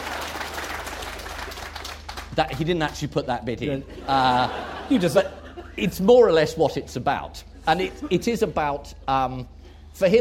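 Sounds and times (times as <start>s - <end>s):
audience applauding: 0.0s - 2.7s
speech: 2.4s - 10.2s
laughter: 3.6s - 6.0s, 7.6s - 8.7s.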